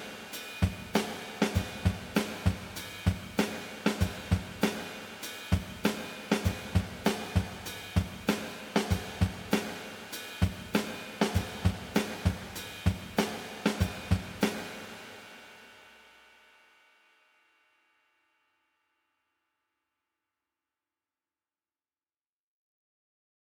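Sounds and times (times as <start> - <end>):
1970s drum kit through Eventide SP2016 room reverb: 0.0 - 17.8.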